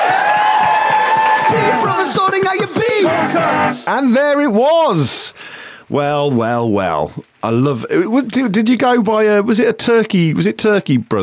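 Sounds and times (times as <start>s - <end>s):
cheering and high whoops: 0.0s - 2.2s
many voices shouting: 0.0s - 2.3s, 2.9s - 3.8s
audience applause: 0.0s - 3.8s
speech: 3.7s - 11.2s.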